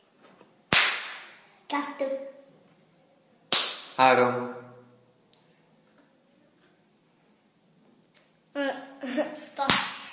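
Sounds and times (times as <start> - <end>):
sharp loud hand clap: 0.7 - 1.4, 3.5 - 4.0, 9.7 - 10.1
speech: 1.7 - 2.4, 4.0 - 4.6.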